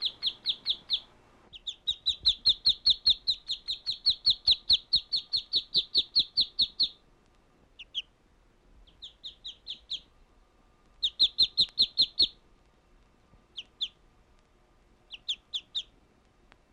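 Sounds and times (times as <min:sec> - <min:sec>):
bird chirping: 0:00.0 - 0:07.0, 0:07.7 - 0:08.2, 0:08.8 - 0:10.2, 0:11.0 - 0:12.4, 0:13.5 - 0:14.0, 0:15.0 - 0:16.0.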